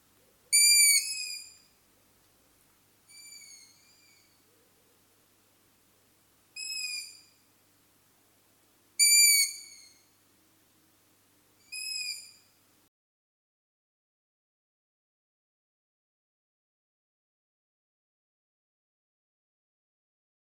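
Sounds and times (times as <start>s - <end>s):
long-eared owls calling: 0.5s - 1.7s, 3.1s - 4.4s, 6.6s - 7.4s, 9.0s - 10.1s, 11.6s - 12.5s.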